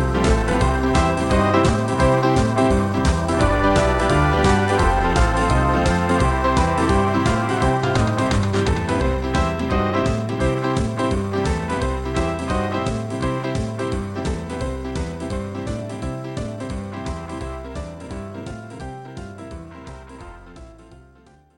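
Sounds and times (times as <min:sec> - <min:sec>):
children's fun alarm and Halloween song playback: 0:00.0 - 0:21.1.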